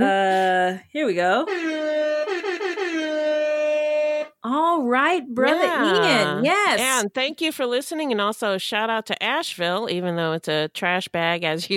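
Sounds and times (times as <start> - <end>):
speech: 0.0 - 1.9, 4.5 - 11.7
hip hop air horn sound effect blaring: 1.4 - 4.4.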